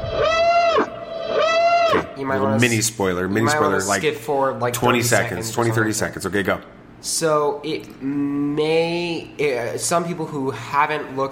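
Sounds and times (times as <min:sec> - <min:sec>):
siren sound effect: 0:00.0 - 0:02.1
speech: 0:02.2 - 0:11.2.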